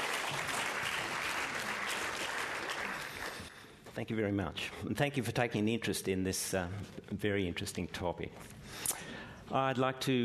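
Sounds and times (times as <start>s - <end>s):
audience applauding to welcome a lecturer: 0.0s - 3.5s
speech: 4.0s - 8.8s, 9.5s - 10.2s.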